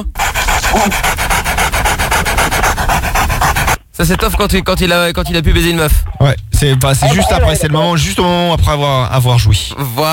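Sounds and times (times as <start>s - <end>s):
speech: 0.0s - 3.1s, 4.0s - 10.1s
person vocally imitating a dog lapping water: 7.0s - 7.6s.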